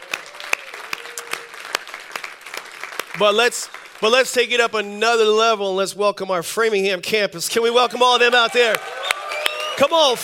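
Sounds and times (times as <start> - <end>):
scattered claps from a church congregation: 0.0 - 4.2
speech: 3.2 - 9.1, 9.8 - 10.2.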